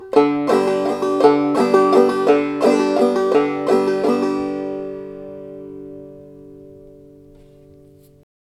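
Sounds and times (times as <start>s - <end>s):
waltz music: 0.0s - 6.6s.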